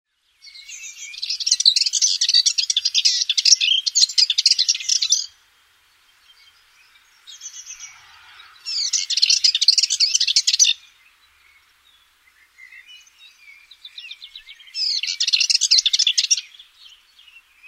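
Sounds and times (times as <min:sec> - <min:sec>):
Eastern subalpine warbler singing: 0:00.1 - 0:17.6.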